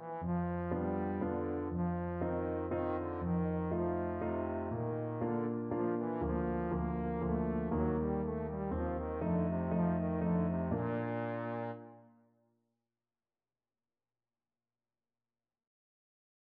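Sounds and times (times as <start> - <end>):
German dance trombone music: 0.0 - 11.9.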